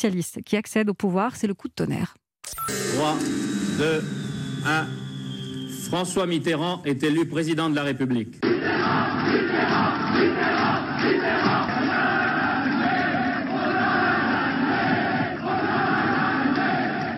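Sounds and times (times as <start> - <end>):
speech: 0.0 - 5.0, 5.9 - 11.6
large jubilant crowd cheering: 8.4 - 17.1.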